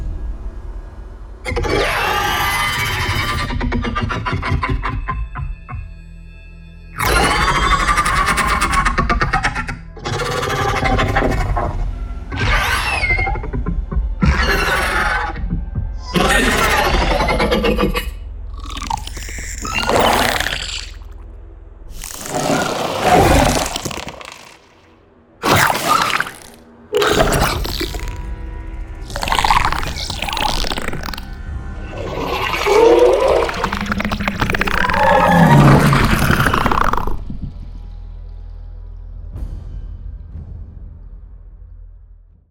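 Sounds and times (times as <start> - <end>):
monster and creature sound effects: 1.5 - 5.2, 7.0 - 21.3, 21.9 - 28.4, 29.0 - 37.7.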